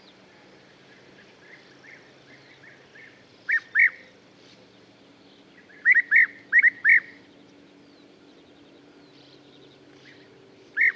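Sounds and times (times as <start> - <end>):
background hiss: 0.0 - 10.9
European bee-eater calling: 1.2 - 4.1, 5.6 - 7.2, 10.8 - 10.9.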